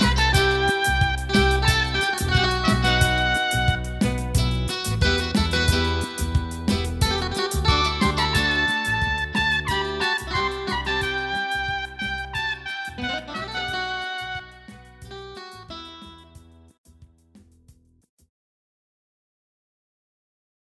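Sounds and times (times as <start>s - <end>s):
Mellotron Trumpet: 0.0s - 6.3s, 7.1s - 15.2s
Mellotron Micro Guitar: 0.0s - 16.7s.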